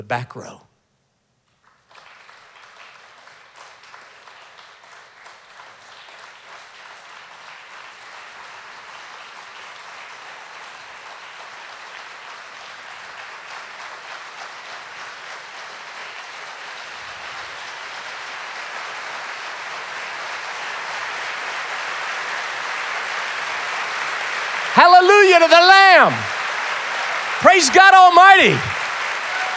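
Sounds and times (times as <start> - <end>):
speech: 0.0 - 0.7, 24.8 - 26.3, 27.5 - 28.8
crowd imitating rainstorm by rubbing and clapping hands: 18.6 - 29.5.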